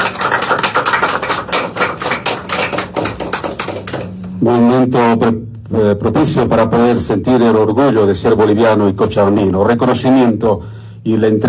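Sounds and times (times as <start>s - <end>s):
audience applause: 0.0s - 4.2s
speech: 4.5s - 11.4s.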